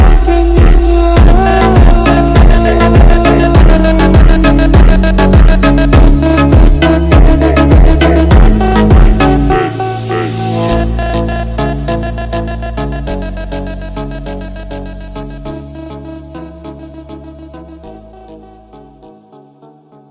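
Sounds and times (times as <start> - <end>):
super slowed funk music: 0.0 - 14.5.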